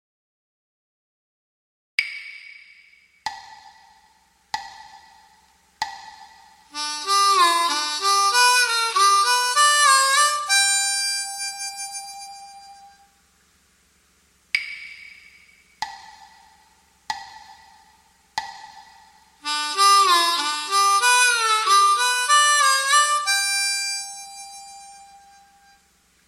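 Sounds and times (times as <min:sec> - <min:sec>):
gaita blues lick: 0:06.7 - 0:13.1, 0:19.4 - 0:25.9.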